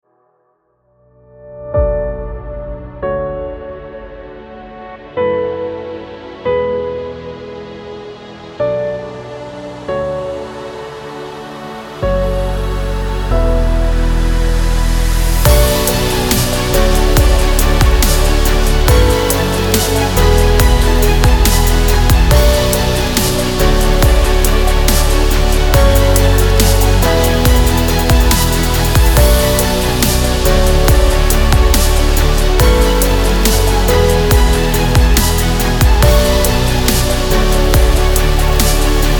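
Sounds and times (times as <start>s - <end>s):
abstract cinematic music: 1.0s - 39.1s.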